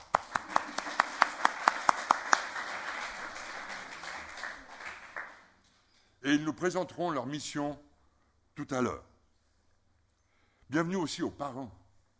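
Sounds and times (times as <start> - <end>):
audience applause: 0.0 - 5.6
speech: 6.2 - 7.9, 8.6 - 9.1, 10.7 - 11.8.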